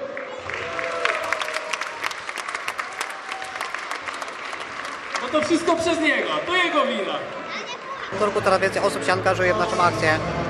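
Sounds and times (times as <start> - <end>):
audience applause: 0.0 - 6.3
whoops and cheers: 0.3 - 4.0
speech: 5.3 - 7.4, 8.1 - 10.4.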